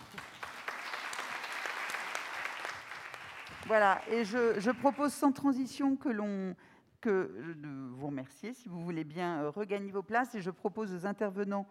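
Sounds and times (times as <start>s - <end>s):
audience applause: 0.0s - 4.0s
speech: 3.6s - 11.6s.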